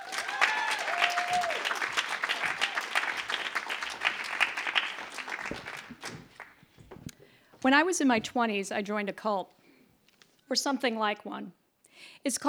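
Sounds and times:
audience applause welcoming a storyteller at a live storytelling event: 0:00.0 - 0:07.1
speech: 0:07.6 - 0:09.6, 0:10.5 - 0:11.6, 0:12.2 - 0:12.4.

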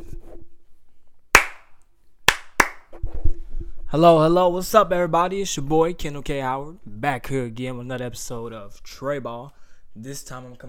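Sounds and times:
sharp hand claps: 0:01.4 - 0:01.7, 0:02.3 - 0:02.9
speech: 0:03.9 - 0:10.6.

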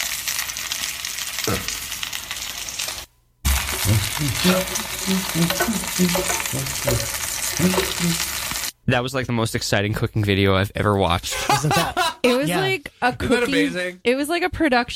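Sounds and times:
chicken frying in a hot pan: 0:00.0 - 0:08.8
speech: 0:03.9 - 0:14.9
laughter: 0:11.3 - 0:13.8.

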